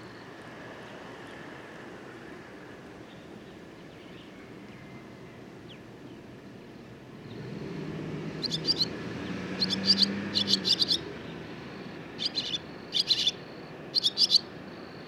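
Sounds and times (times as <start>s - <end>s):
barn swallow calling: 8.4s - 15.0s.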